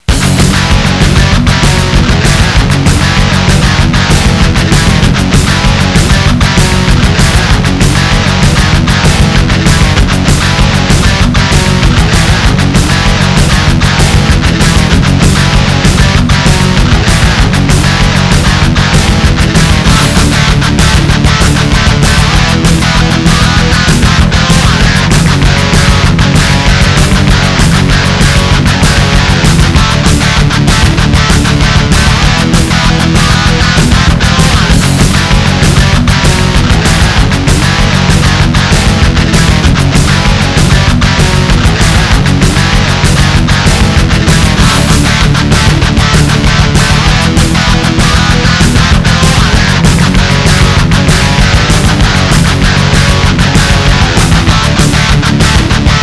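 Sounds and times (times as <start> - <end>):
race music: 0.0 - 56.0.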